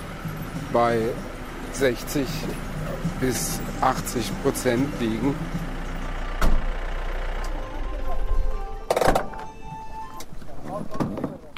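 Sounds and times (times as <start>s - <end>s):
construction contractor's truck engine droning on a steep mountain road in the Indian Himalaya: 0.0s - 10.8s
speech: 0.7s - 5.7s
door-like thump: 6.4s - 6.6s.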